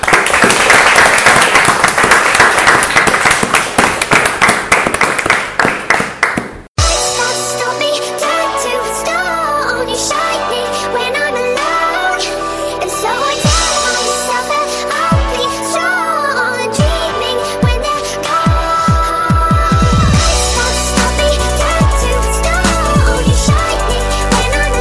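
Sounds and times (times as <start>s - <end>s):
crowd applauding: 0.0s - 6.6s
music: 6.8s - 24.8s.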